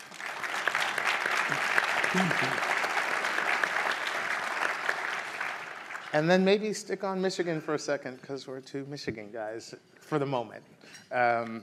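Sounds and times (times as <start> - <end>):
conference audience applause: 0.0 - 6.2
speech: 2.2 - 2.7, 6.1 - 11.6.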